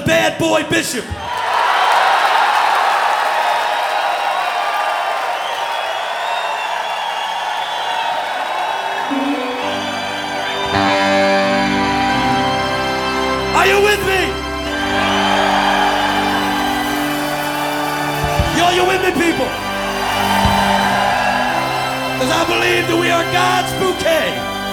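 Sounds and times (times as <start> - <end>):
speech: 0.1 - 1.4, 22.3 - 24.5
large audience applause and cheering: 1.1 - 24.7
music playing: 9.1 - 24.7.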